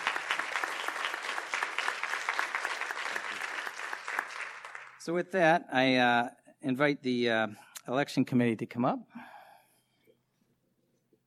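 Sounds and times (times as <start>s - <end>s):
round of applause: 0.0s - 5.1s
speech: 5.0s - 9.1s.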